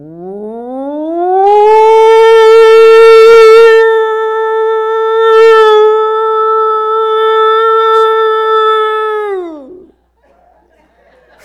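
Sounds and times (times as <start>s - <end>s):
person's voice imitating a winding air raid siren: 0.0s - 9.9s
laughter: 10.0s - 11.4s.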